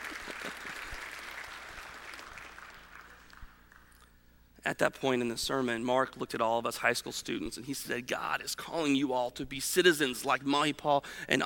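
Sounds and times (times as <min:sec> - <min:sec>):
audience clapping: 0:00.0 - 0:04.0
speech: 0:04.7 - 0:11.4.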